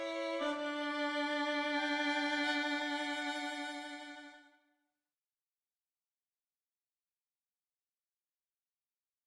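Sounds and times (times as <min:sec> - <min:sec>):
violin duet: 0:00.0 - 0:04.5.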